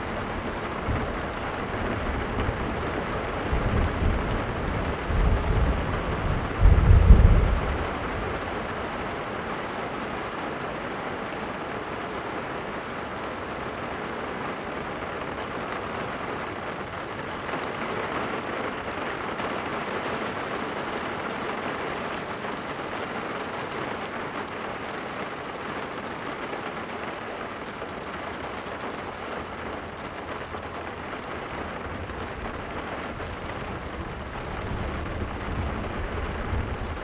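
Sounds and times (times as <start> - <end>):
rain ambience on a car: 0.0 - 37.0.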